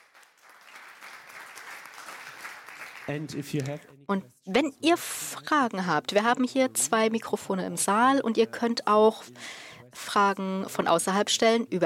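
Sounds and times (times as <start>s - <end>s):
audience applause: 0.0s - 3.8s
speech: 3.1s - 11.8s.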